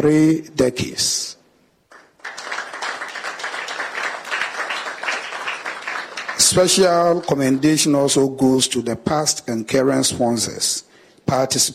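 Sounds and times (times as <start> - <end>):
speech: 0.0 - 1.4, 6.4 - 11.7
applause: 1.9 - 7.9.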